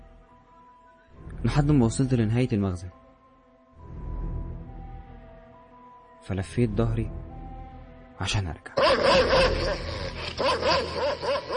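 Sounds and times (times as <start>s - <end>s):
speech: 1.4s - 3.0s, 6.3s - 7.3s, 8.2s - 11.5s
huge black dog barking and yelping: 8.8s - 11.5s.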